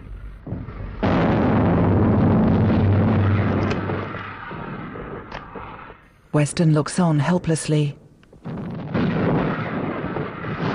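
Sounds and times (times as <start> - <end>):
heavy artillery fire: 0.0 - 6.0, 8.4 - 10.7
speech: 6.4 - 8.0.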